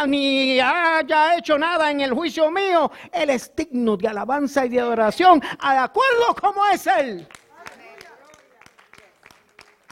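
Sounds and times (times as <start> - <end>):
speech: 0.0 - 7.4
audience applause: 7.3 - 9.9.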